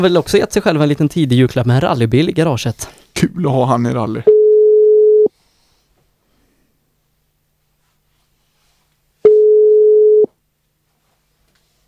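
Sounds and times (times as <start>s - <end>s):
speech: 0.0s - 4.4s
low-pitched telephone ringback tones of an unanswered call: 4.3s - 5.3s, 9.3s - 10.3s.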